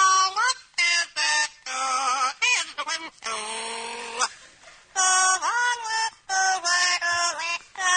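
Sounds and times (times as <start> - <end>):
parrot singing: 0.0 - 4.4, 5.0 - 7.9.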